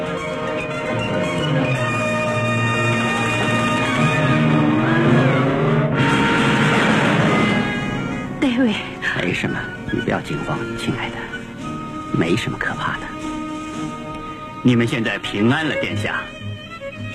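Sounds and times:
car driving off fast, engine roar accelerating: 0.0s - 9.0s
speech: 9.4s - 11.4s, 12.2s - 13.3s, 14.6s - 16.4s.

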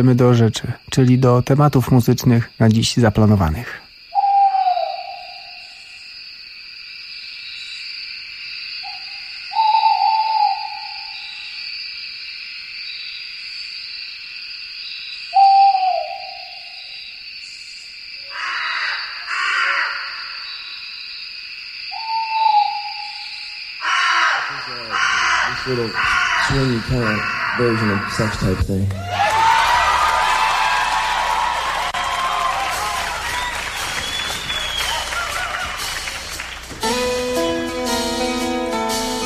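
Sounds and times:
speech: 0.0s - 3.8s, 26.8s - 29.2s
night birds calling: 0.0s - 39.2s
owl hooting: 4.1s - 6.0s, 8.8s - 11.6s, 15.3s - 17.0s, 18.2s - 20.8s, 21.9s - 28.6s
laughter: 25.5s - 36.6s.

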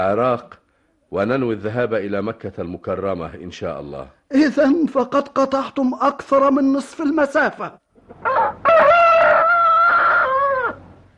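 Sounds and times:
speech: 0.0s - 8.4s
rooster crowing: 8.2s - 10.9s.

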